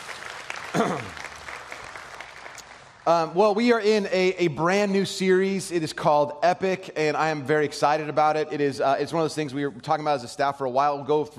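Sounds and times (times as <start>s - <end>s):
room of people clapping: 0.0s - 3.4s
speech: 0.7s - 1.2s, 3.1s - 11.3s.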